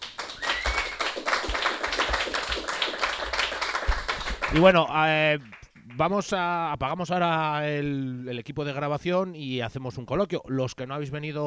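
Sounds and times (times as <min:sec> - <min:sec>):
crowd applauding: 0:00.0 - 0:06.0
speech: 0:04.5 - 0:11.4.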